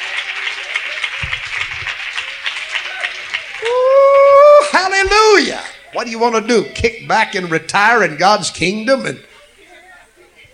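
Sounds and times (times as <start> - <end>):
audience clapping hands: 0.0 - 5.4
speech: 4.7 - 9.3.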